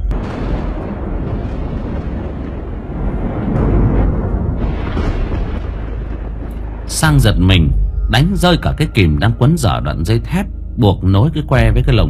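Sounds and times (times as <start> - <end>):
deafening thunderclap: 0.1 - 8.7
speech: 7.0 - 12.0.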